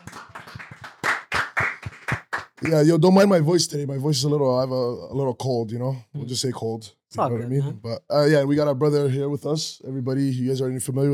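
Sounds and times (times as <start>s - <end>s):
audience clapping: 0.0s - 2.9s
speech: 2.6s - 11.1s.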